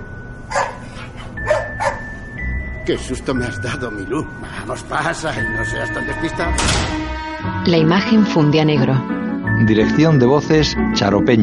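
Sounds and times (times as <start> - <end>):
dog barking: 0.5 - 2.1
speech: 2.9 - 11.4.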